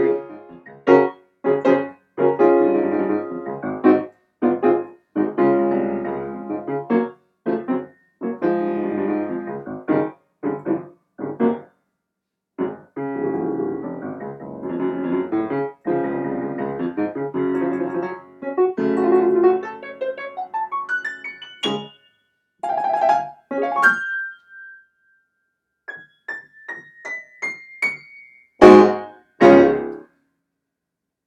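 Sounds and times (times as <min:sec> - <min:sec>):
piano improvisation in D flat major: 0:00.0 - 0:11.7, 0:12.6 - 0:24.8, 0:25.9 - 0:30.0.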